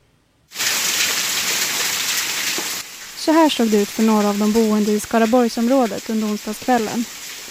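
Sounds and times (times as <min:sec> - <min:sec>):
heavy hailstorm with golf-ball-sized hailstones: 0:00.5 - 0:07.4
speech: 0:03.3 - 0:07.2.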